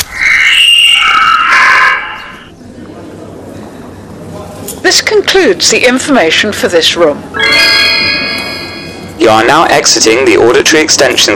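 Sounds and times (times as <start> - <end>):
scream of a rose stem being cut: 0.0 - 2.5
speech: 5.0 - 7.8, 9.3 - 11.3.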